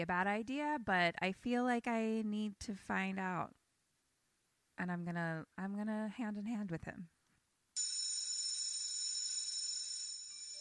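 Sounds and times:
speech: 0.0s - 3.6s, 4.8s - 7.1s
school bell ringing: 7.8s - 10.5s.

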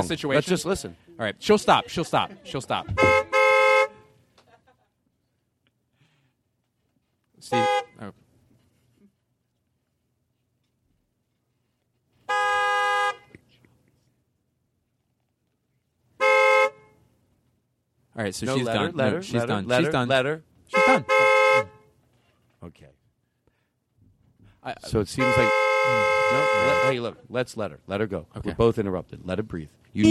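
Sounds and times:
speech: 0.0s - 3.3s, 7.4s - 8.2s, 18.2s - 21.7s, 22.6s - 23.0s, 24.6s - 30.0s
car horns honking: 2.8s - 4.2s, 7.4s - 8.1s, 12.2s - 13.4s, 16.2s - 17.1s, 20.7s - 22.0s, 24.9s - 27.1s.

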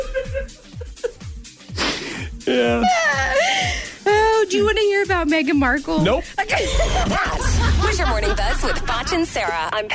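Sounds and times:
laughter: 0.0s - 1.2s, 6.4s - 9.9s
strained wheezy vocal noises: 1.6s - 4.0s
speech: 2.4s - 3.8s, 4.5s - 9.9s.

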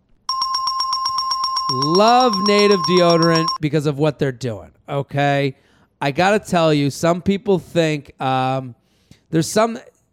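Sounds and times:
bell ringing: 0.3s - 3.6s
speech: 1.7s - 9.9s.

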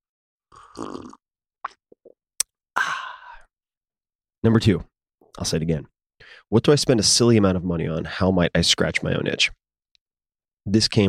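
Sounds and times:
person sipping coffee: 0.5s - 1.2s
speech: 0.8s - 1.2s, 4.4s - 9.6s, 10.6s - 11.0s.

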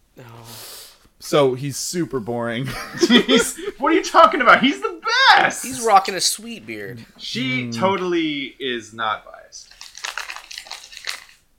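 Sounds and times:
speech: 1.2s - 9.8s
laughter: 2.6s - 5.7s
paper crumpled into a ball: 9.6s - 11.4s.

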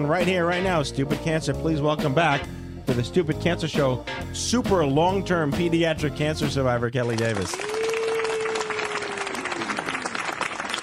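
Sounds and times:
speech: 0.0s - 7.7s
round of crowd applause: 7.0s - 10.8s.

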